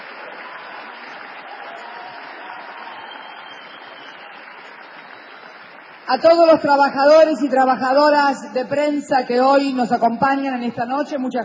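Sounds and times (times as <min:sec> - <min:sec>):
crowd applause: 0:00.0 - 0:06.5
speech: 0:06.1 - 0:11.4.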